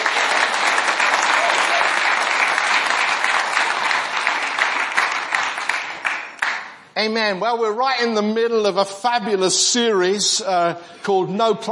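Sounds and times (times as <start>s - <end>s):
audience applause: 0.0s - 6.8s
speech: 7.0s - 11.7s.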